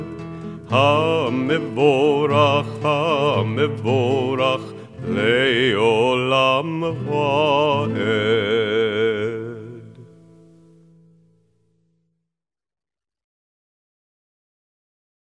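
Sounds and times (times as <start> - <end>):
person singing a prayer: 0.7 - 10.0.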